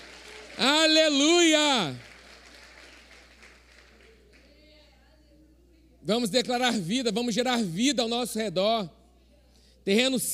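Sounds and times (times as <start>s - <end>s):
audience applauding: 0.0s - 4.5s
speech: 0.6s - 2.1s, 6.1s - 9.0s, 9.8s - 10.3s.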